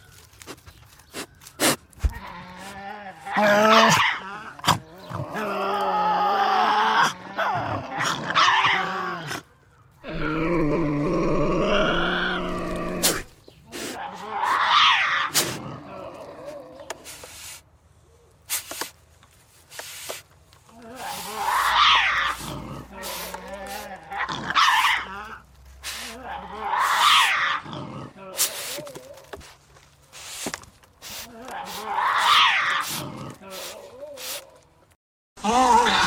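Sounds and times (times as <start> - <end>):
Tasmanian devil vocalizing: 1.6 - 17.0, 20.7 - 29.4, 31.1 - 34.6, 35.4 - 36.0.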